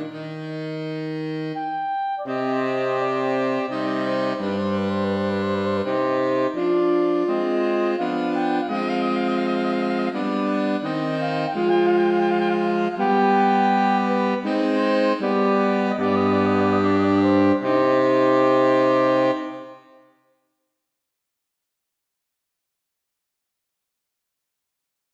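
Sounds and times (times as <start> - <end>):
saxophone quartet playing an air: 0.0 - 20.0.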